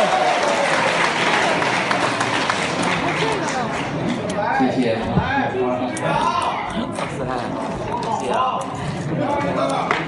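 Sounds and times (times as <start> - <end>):
audience applause: 0.0 - 4.2
murmur of voices: 0.0 - 10.0.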